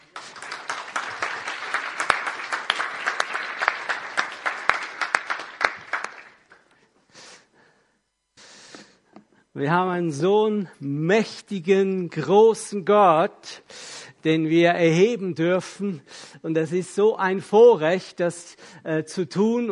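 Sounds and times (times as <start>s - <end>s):
audience applause: 0.0s - 6.7s
speech: 9.6s - 19.7s.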